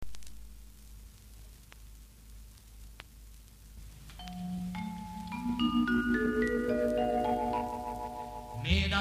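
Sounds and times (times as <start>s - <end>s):
welcome jingle: 4.2s - 8.9s.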